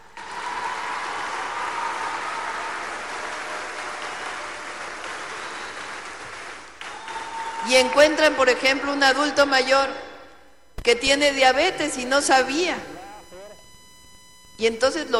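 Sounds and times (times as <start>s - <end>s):
audience applause for health professionals: 0.0s - 8.1s
speech: 7.6s - 10.0s, 10.8s - 12.9s, 14.6s - 15.1s.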